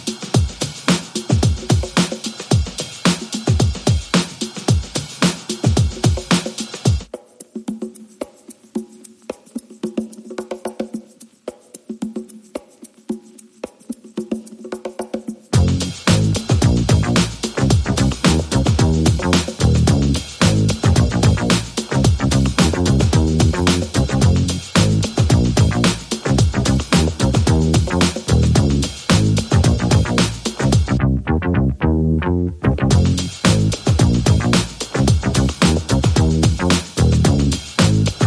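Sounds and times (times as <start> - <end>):
drums: 0.0 - 31.0, 32.8 - 38.2
bass: 15.6 - 38.2.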